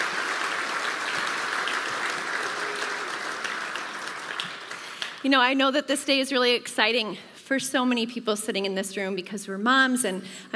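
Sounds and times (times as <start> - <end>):
crowd audience round of applause: 0.0 - 5.2
speech: 5.2 - 10.5.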